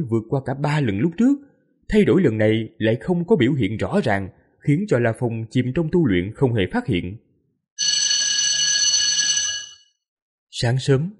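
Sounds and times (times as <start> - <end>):
speech: 0.0 - 7.2, 10.6 - 11.1
detention camp alarm bell ringing: 7.8 - 9.9.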